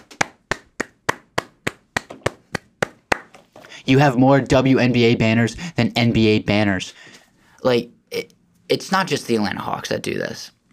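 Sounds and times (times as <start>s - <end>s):
applause, hands clapping: 0.0s - 3.5s
speech: 3.9s - 10.6s.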